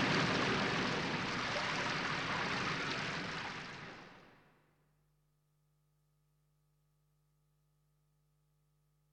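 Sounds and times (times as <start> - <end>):
storm with rain: 0.0 - 4.5.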